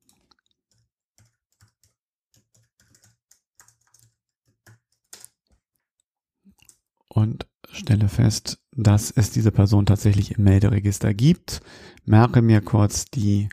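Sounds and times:
typing a first name on a computer keyboard: 0:00.0 - 0:05.6
speech: 0:07.2 - 0:13.5.

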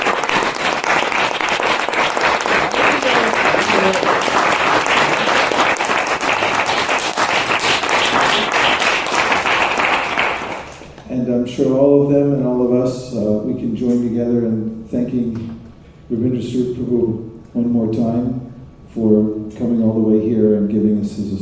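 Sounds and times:
lecture audience applause for internet viewers: 0:00.0 - 0:11.0
speech: 0:11.6 - 0:15.5, 0:16.1 - 0:21.4.

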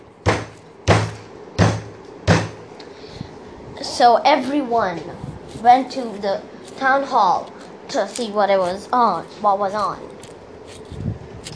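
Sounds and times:
heavy booming thuds on the ground: 0:00.2 - 0:02.7
speech: 0:03.9 - 0:10.1.

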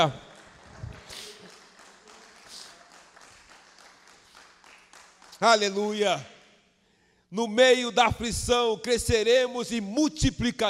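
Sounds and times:
speech: 0:00.0 - 0:00.2, 0:05.4 - 0:06.3, 0:07.3 - 0:10.6
audience applause: 0:00.0 - 0:05.4.

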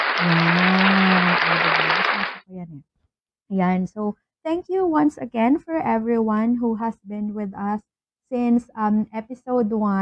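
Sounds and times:
small group applause: 0:00.0 - 0:02.4
speech: 0:00.2 - 0:00.8, 0:02.6 - 0:10.0.

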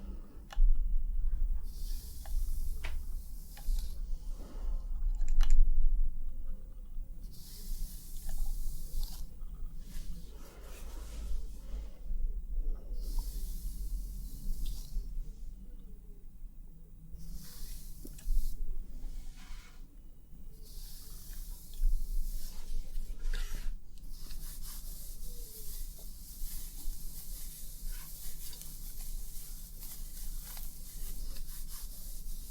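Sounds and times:
constant hiss: 0:00.0 - 0:32.4
low steady rumble: 0:00.0 - 0:32.4
scalp massage and hair wash rubbing and squishing: 0:01.6 - 0:04.7, 0:07.2 - 0:12.0, 0:17.2 - 0:19.9, 0:20.5 - 0:32.4.

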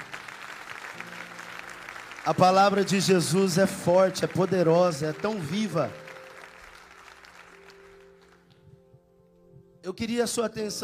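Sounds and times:
audience applause: 0:00.0 - 0:08.5
speech: 0:02.3 - 0:06.0, 0:09.9 - 0:10.8.

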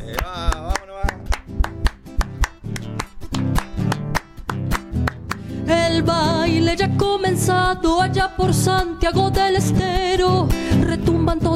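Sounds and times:
rhythmic hand clapping to chacarera: 0:00.0 - 0:05.9
lively folk tune with guitar: 0:00.0 - 0:11.5
speech: 0:06.0 - 0:11.5.

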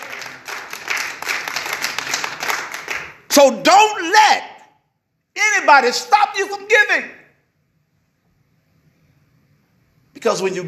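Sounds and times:
crowd hand clapping: 0:00.0 - 0:03.3
speech: 0:03.4 - 0:04.5, 0:05.6 - 0:07.2, 0:10.2 - 0:10.6.

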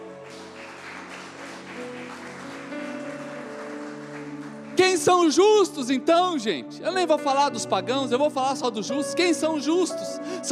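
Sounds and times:
audience applause: 0:00.0 - 0:05.7
speech: 0:05.0 - 0:10.5.

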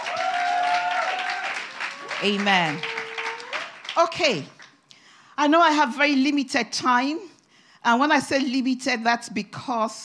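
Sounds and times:
crowd applauding: 0:00.0 - 0:04.8
speech: 0:02.2 - 0:02.9, 0:04.0 - 0:04.6, 0:05.4 - 0:10.0.

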